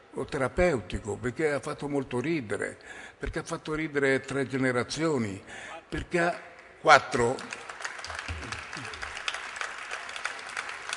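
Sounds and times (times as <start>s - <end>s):
speech: 0.2s - 7.7s
audience applause: 7.2s - 10.9s.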